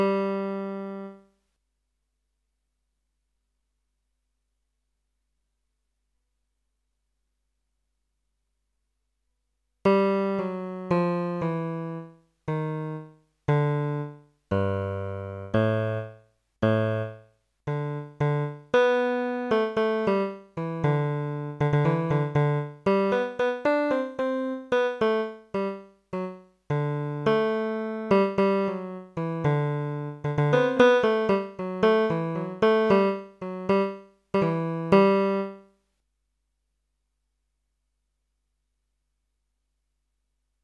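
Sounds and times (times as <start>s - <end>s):
bass: 9.9s - 35.5s.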